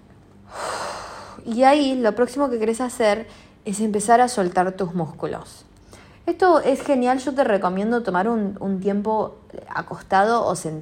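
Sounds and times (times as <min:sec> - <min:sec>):
deep breath during a relaxation exercise: 0:00.5 - 0:01.4
speech: 0:01.4 - 0:05.7, 0:06.3 - 0:10.8.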